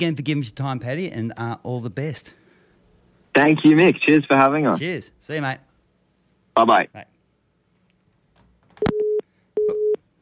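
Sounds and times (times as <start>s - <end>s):
speech: 0.0s - 2.4s, 3.4s - 5.7s, 6.6s - 7.1s
telephone busy tone after a call hangs up: 8.8s - 10.0s.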